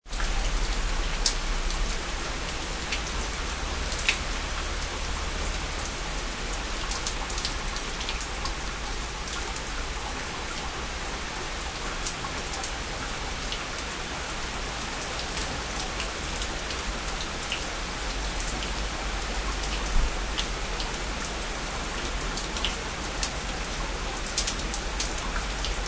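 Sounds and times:
rain shower dripping on a porch: 0.0s - 25.8s.

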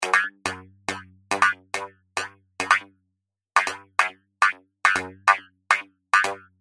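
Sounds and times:
robot-style boogie loop at 140 bpm: 0.0s - 2.9s, 3.6s - 5.4s.

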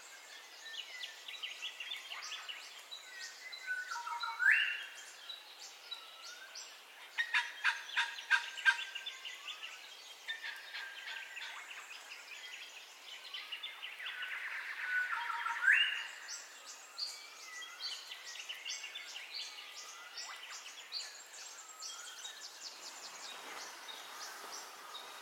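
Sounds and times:
birds chirping and whistling in a dawn chorus: 0.3s - 25.2s.

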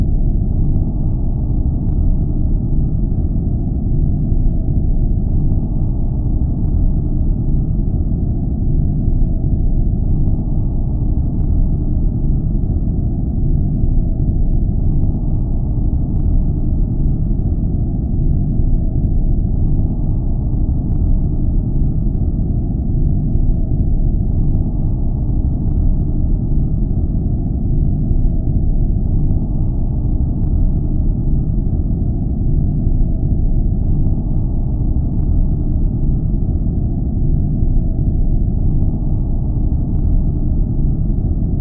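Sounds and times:
science fiction planetary rumble ambience: 0.0s - 41.6s.

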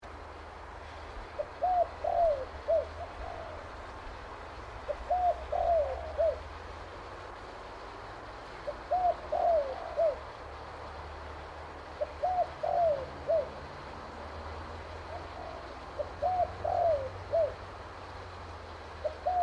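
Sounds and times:
spotted dove cooing: 1.4s - 4.1s, 4.8s - 6.6s, 8.6s - 10.4s, 12.0s - 13.6s, 15.0s - 17.7s, 19.0s - 19.4s.

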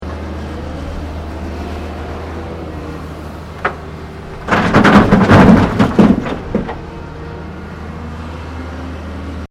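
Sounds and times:
construction earthmover unloading into dump truck: 0.4s - 7.9s.

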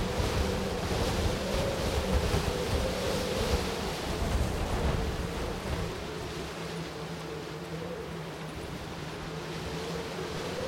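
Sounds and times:
strong blustery mountain wind gusts with roaring whistle: 0.0s - 7.7s, 8.7s - 10.6s.

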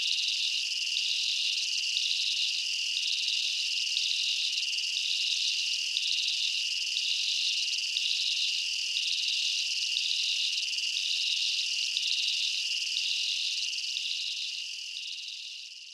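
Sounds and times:
insects chirping in a jungle at night: 0.1s - 15.9s.

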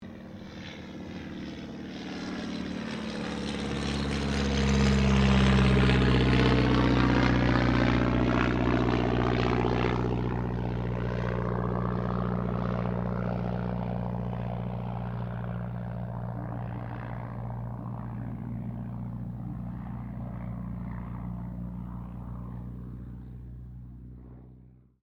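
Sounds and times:
de Havilland DH82A Tiger Moth aircraft passing: 0.0s - 25.0s.

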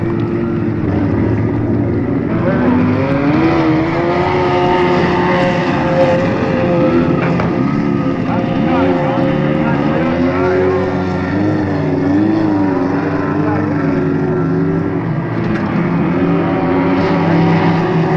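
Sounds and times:
hydroplane racing across water from 78 disc: 0.0s - 18.1s.

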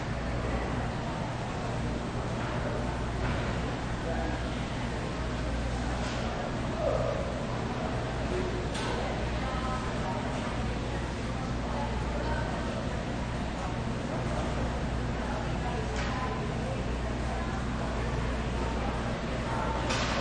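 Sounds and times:
food court ambience: 0.0s - 20.1s.

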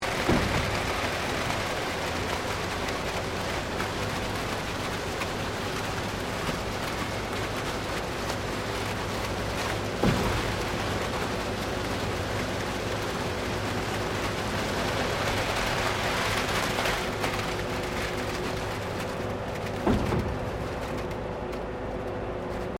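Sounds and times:
construction cement truck pouring: 0.0s - 22.7s.

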